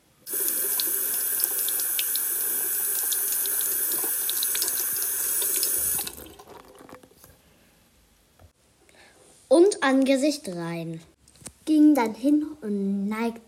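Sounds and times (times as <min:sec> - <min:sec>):
tap water running into a sink while washing hands: 0:00.3 - 0:07.1
speech: 0:09.8 - 0:11.1, 0:12.0 - 0:13.4.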